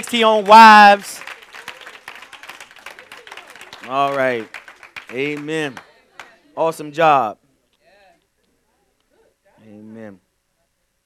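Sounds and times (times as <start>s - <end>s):
speech: 0.0s - 1.3s, 3.9s - 5.9s, 6.6s - 7.4s, 9.7s - 10.2s
audience applause: 0.0s - 6.4s.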